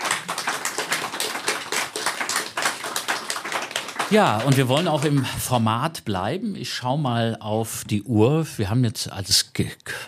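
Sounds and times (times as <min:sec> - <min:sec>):
applause: 0:00.0 - 0:05.7
speech: 0:04.1 - 0:10.0.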